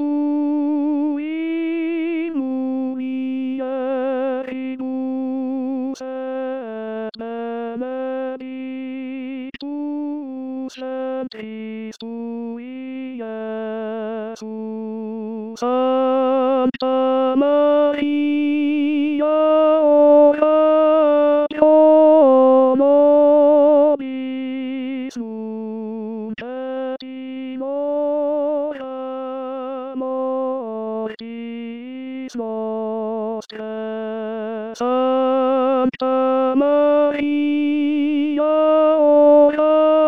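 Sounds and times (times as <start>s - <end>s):
tenor singing a hymn: 0.0s - 40.0s
choir singing a chorale: 38.3s - 40.0s.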